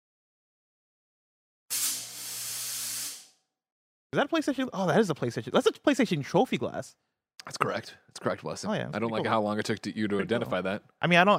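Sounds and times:
fog machine spraying: 1.7s - 3.3s
speech: 4.1s - 11.3s.

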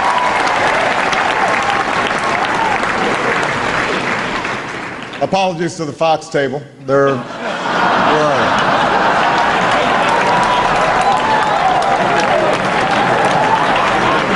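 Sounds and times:
audience applause in a large room: 0.0s - 5.4s, 7.4s - 14.3s
speech: 5.2s - 7.4s
laughter: 6.9s - 14.3s.

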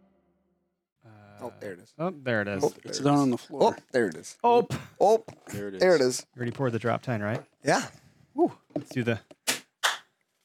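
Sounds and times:
speech: 1.4s - 9.4s
hand clap for audio sync: 9.5s - 10.1s.

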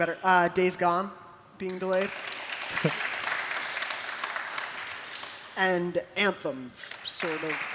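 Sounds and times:
speech: 0.0s - 3.1s, 5.6s - 7.7s
people clapping: 1.7s - 5.8s, 6.8s - 7.7s.

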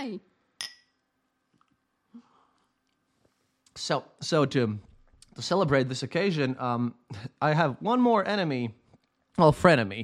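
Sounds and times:
speech: 0.0s - 0.3s, 3.8s - 8.8s, 9.4s - 10.0s
champagne glasses clinking: 0.6s - 1.0s.

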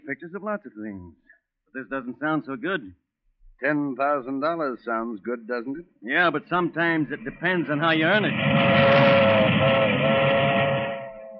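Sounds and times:
speech: 0.1s - 3.0s, 3.6s - 10.6s
passing milk train rumbling past: 7.0s - 11.3s
milk train whistle: 7.9s - 11.3s.

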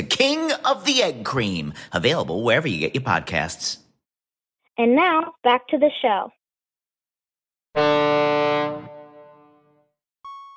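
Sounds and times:
speech: 0.0s - 3.8s, 4.8s - 6.4s
buzzy electronic tone: 7.8s - 9.7s
sharp pure-pitched beep: 10.3s - 10.5s.

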